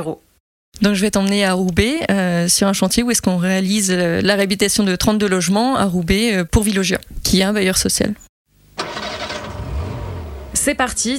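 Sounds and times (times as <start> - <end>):
speech: 0.0 - 8.9, 10.6 - 11.1
car engine starting and idling: 8.8 - 11.1.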